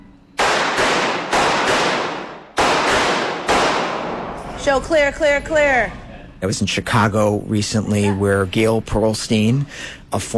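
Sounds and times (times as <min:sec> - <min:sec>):
gunshots at a firearms training range: 0:00.4 - 0:04.4
speech: 0:04.6 - 0:10.3.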